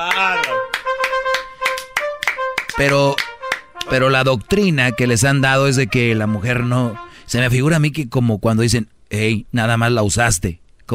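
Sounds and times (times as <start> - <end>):
rhythmic clapping: 0.0 - 5.0
speech: 2.8 - 3.2, 3.9 - 10.9.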